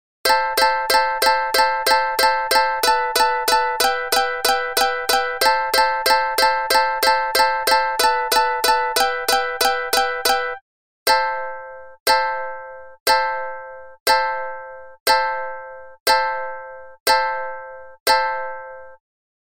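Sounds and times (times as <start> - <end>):
ringtone: 0.2 - 19.0.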